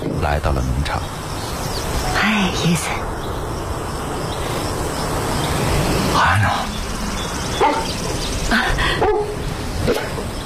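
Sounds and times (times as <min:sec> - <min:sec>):
hiss: 0:00.0 - 0:10.4
speech: 0:00.2 - 0:01.3, 0:02.2 - 0:03.1, 0:06.2 - 0:06.8
dog barking and whimpering: 0:07.6 - 0:08.0, 0:09.0 - 0:10.1.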